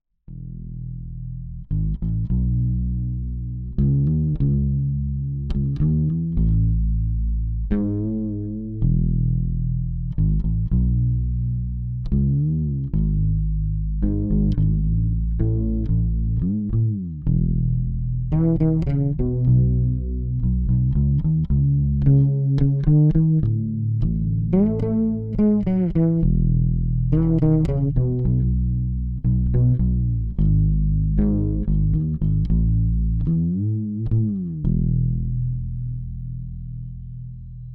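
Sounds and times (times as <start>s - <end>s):
fretless bass chorus groove: 0.3s - 37.7s.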